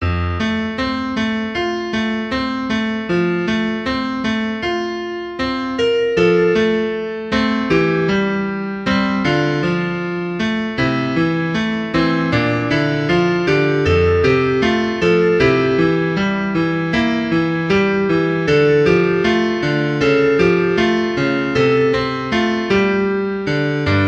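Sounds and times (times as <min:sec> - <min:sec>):
piano: 0:00.0 - 0:24.0.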